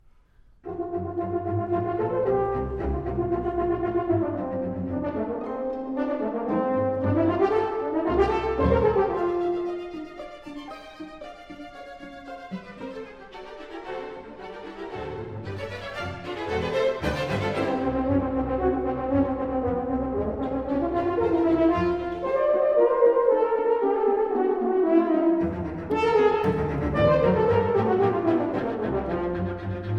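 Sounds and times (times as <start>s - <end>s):
horn and strings: 0.6s - 29.9s.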